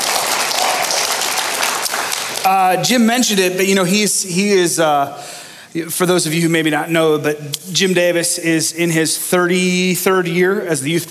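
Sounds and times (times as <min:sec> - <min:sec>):
parents clapping: 0:00.0 - 0:03.3
speech: 0:02.5 - 0:11.1.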